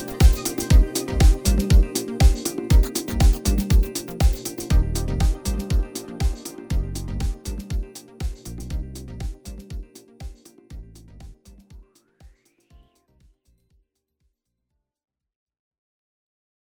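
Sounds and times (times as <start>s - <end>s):
chilled ambient music: 0.0s - 11.6s.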